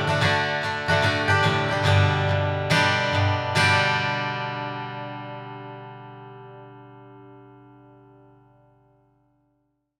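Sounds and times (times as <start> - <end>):
Gibson Southern Jumbo guitar: 0.0 - 9.6.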